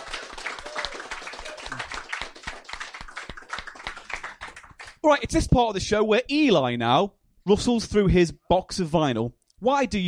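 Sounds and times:
round of applause: 0.0 - 5.0
speech: 5.0 - 10.0.

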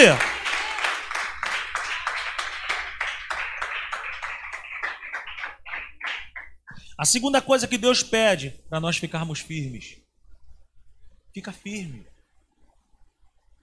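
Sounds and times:
speech: 0.0 - 0.3, 7.0 - 10.0, 11.4 - 12.1
audience applause: 0.0 - 6.6.

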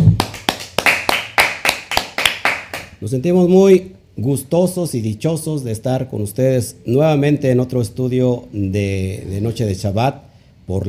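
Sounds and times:
audience rhythmic clapping: 0.0 - 3.0
speech: 3.0 - 10.8.

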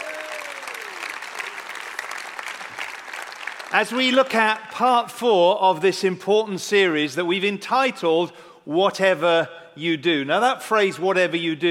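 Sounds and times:
audience applauding at a church service: 0.0 - 4.4
speech: 3.7 - 11.6.

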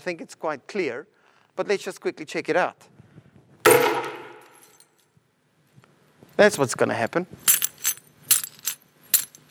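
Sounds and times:
speech: 0.0 - 2.9, 6.4 - 7.6
ceramic cup shattering: 3.7 - 4.8.

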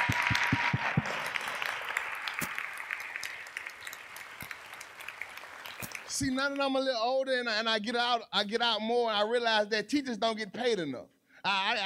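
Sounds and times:
crowd applause: 0.0 - 6.6
speech: 6.2 - 11.8.

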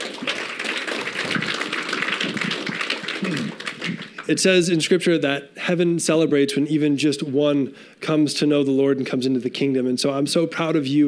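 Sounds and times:
audience applause: 0.0 - 4.3
speech: 4.3 - 11.0.

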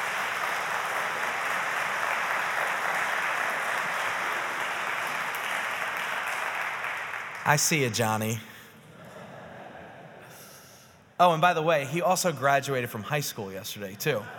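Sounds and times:
crowd clapping: 0.0 - 8.3
speech: 7.5 - 8.5, 11.2 - 14.3.

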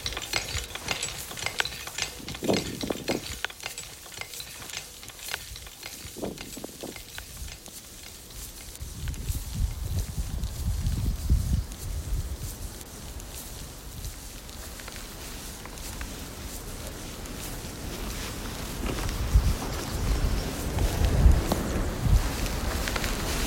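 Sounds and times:
knocks and thumps: 0.0 - 7.0
sharp clicks and rattles on a hike toward Everest Base Camp: 0.0 - 8.8
steady hiss: 0.0 - 23.4.

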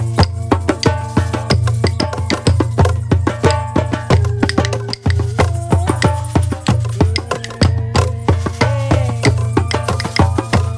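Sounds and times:
drum circle pounding hand drums: 0.0 - 10.7.

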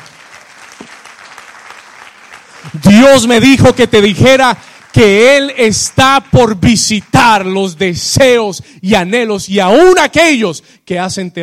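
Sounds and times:
loud audience applause: 0.0 - 7.5
speech: 2.6 - 11.4.

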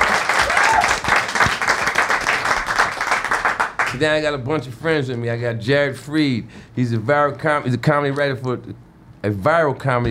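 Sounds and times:
audience applause greeting the opening of a comedy show: 0.0 - 4.0
speech: 4.0 - 10.0.

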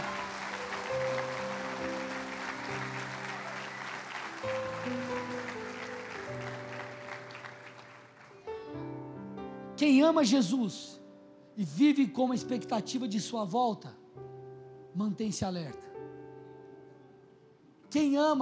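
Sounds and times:
audience applause: 0.0 - 8.7
speech: 9.8 - 11.0, 11.6 - 14.0, 15.0 - 15.9, 17.9 - 18.3.

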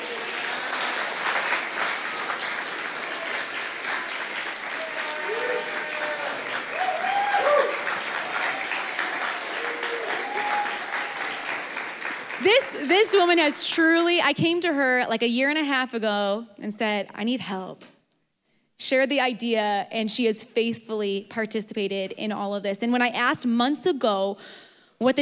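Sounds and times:
audience applause: 0.0 - 13.4
faint voices and whoops: 4.6 - 11.5
speech: 12.9 - 17.9, 18.8 - 25.2.

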